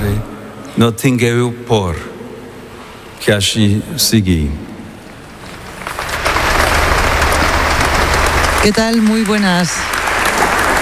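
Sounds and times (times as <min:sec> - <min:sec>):
speech: 0:00.8 - 0:02.1, 0:03.2 - 0:04.7, 0:08.6 - 0:10.0
crowd applause after a speech: 0:05.6 - 0:10.8.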